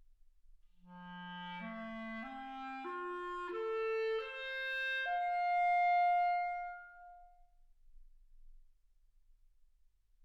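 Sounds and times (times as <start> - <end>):
clarinet: 0.8 - 7.5.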